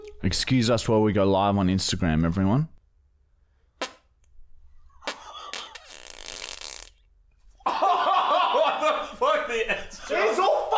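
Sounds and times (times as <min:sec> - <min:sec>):
speech: 0:00.3 - 0:02.8
fart: 0:03.8 - 0:04.1, 0:05.0 - 0:07.1
people laughing: 0:07.6 - 0:10.7.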